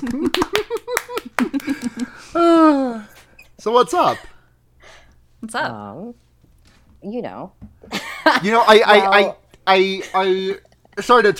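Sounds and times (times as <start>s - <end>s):
speech: 0.0s - 0.7s, 3.6s - 4.3s, 5.4s - 6.2s, 7.0s - 11.3s
hands clapping: 0.0s - 2.1s.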